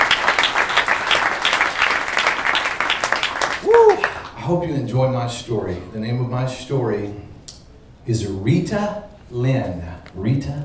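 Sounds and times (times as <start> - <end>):
audience applause: 0.0 - 4.3
speech: 4.5 - 7.3, 8.0 - 10.6.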